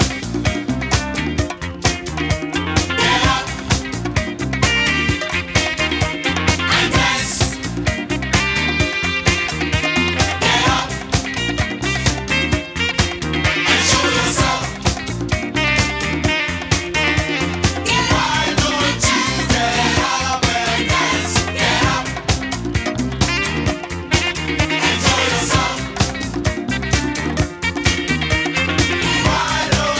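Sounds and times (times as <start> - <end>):
disco music: 0.0 - 29.9.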